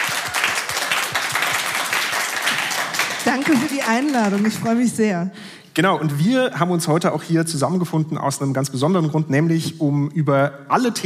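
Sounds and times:
applause for a podcast guest: 0.0s - 5.0s
speech: 3.2s - 11.0s.

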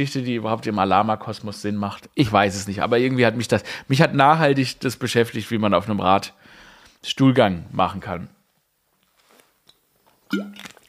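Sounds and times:
speech: 0.0s - 8.4s, 10.3s - 10.7s
person sipping water: 10.3s - 10.8s.

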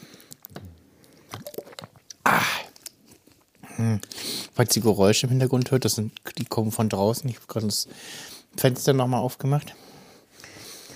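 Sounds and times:
sipping a drink of water: 0.4s - 2.9s
speech: 3.8s - 9.9s.

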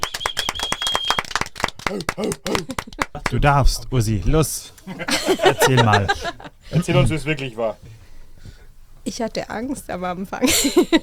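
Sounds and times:
people clapping hands: 0.0s - 3.8s, 5.5s - 6.4s
laughter: 1.7s - 3.9s, 4.8s - 7.5s, 10.4s - 11.0s
speech: 1.9s - 8.0s, 9.0s - 11.0s.

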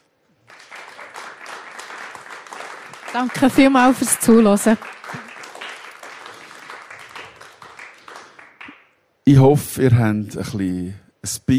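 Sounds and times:
audience applause: 0.4s - 8.8s
speech: 3.1s - 5.2s, 9.3s - 11.5s.

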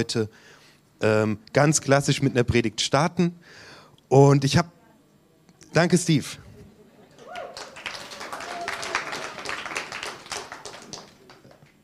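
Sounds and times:
speech: 0.0s - 4.8s, 5.7s - 6.4s
audience applause: 7.1s - 11.8s.

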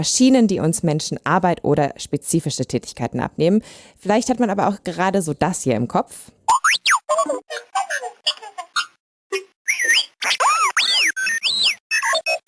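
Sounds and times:
speech: 0.0s - 6.4s
robot droid squeaking and beeping: 6.5s - 7.1s, 8.3s - 12.4s.

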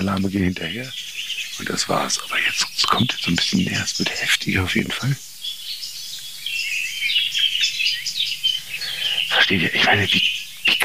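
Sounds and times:
faint low hum: 0.0s - 5.2s, 8.2s - 10.8s
speech: 0.0s - 5.3s, 9.5s - 10.8s
song thrush singing: 0.0s - 10.8s.

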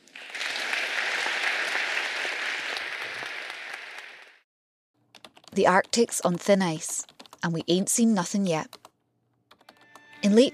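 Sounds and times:
audience applause welcoming Professor William Nordhaus: 0.0s - 4.4s
speech: 5.6s - 8.8s, 10.2s - 10.5s.

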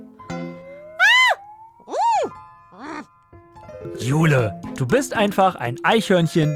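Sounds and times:
brown bear screaming and snorting: 1.0s - 3.0s
speech: 3.9s - 6.5s.

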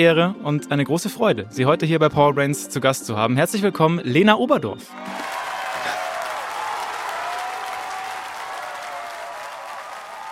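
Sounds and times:
speech: 0.0s - 5.3s
audience applause: 5.0s - 10.3s.

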